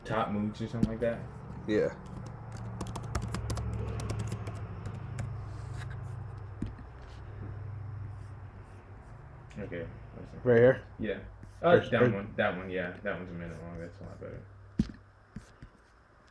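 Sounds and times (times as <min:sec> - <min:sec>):
speech: 0:00.1 - 0:02.2, 0:09.6 - 0:14.5
typing a search into YouTube on a computer keyboard: 0:00.8 - 0:06.9.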